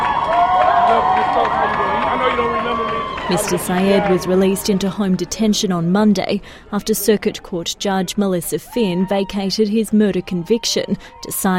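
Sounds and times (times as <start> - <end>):
scattered claps and whoops: 0.0 - 4.5
crowd of supporters cheering and shouting: 0.0 - 5.9, 8.5 - 11.5
speech: 3.3 - 11.5.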